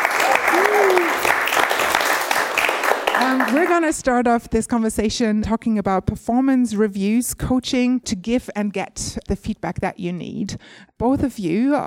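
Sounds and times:
audience applause: 0:00.0 - 0:03.9
speech: 0:03.5 - 0:11.8.

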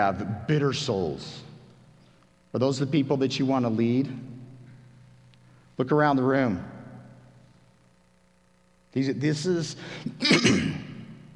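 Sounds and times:
speech: 0:00.0 - 0:01.5, 0:02.5 - 0:04.4, 0:05.8 - 0:06.8, 0:08.9 - 0:10.9
man clearing his throat: 0:10.0 - 0:11.0.

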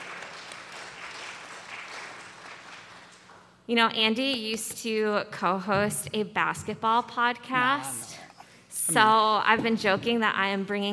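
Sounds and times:
audience applause welcoming a guest onto the stage: 0:00.0 - 0:03.3
speech: 0:03.7 - 0:08.2, 0:08.9 - 0:10.9.

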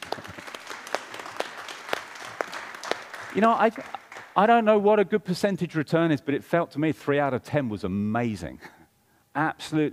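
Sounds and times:
audience applause: 0:00.0 - 0:04.5
speech: 0:03.3 - 0:09.9.

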